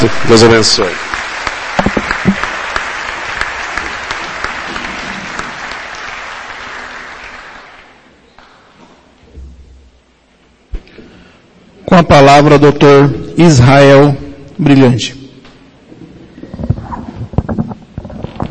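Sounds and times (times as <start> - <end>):
speech: 0.0 - 1.1, 12.1 - 15.2
audience applause: 0.0 - 8.7.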